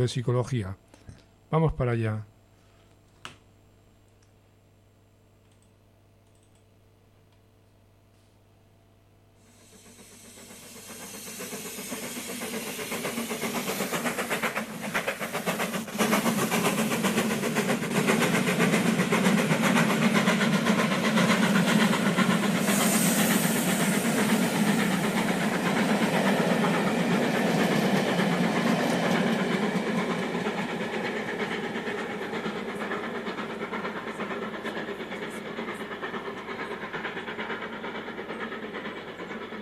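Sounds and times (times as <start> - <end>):
speech: 0.0 - 0.9, 1.5 - 2.3
single click: 4.1 - 4.4, 5.4 - 6.7
train running on rails as a radio transition effect: 9.4 - 39.5.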